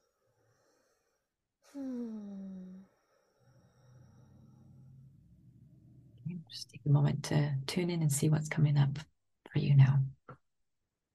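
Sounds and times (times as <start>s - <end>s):
deep breath let out as a voiced sigh during an EFT tapping session: 1.6s - 4.7s
speech: 1.7s - 2.2s, 6.4s - 10.0s.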